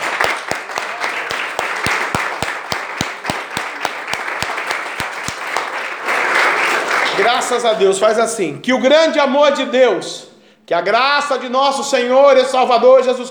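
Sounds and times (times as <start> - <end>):
large group applauding: 0.0 - 7.8
speech: 7.2 - 13.2.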